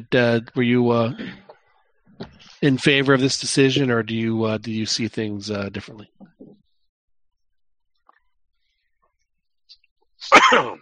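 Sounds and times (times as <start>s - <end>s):
speech: 0.0s - 1.4s, 2.2s - 6.4s, 10.2s - 10.8s
person coughing and choking: 1.1s - 1.5s, 10.2s - 10.8s.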